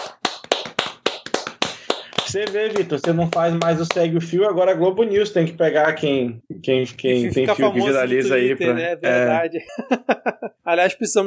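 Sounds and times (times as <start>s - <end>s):
hand clapping: 0.0s - 4.1s
speech: 2.3s - 11.2s
laughter: 9.6s - 10.7s.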